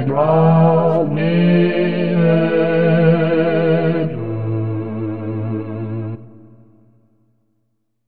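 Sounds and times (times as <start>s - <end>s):
bass voice singing: 0.0s - 6.2s.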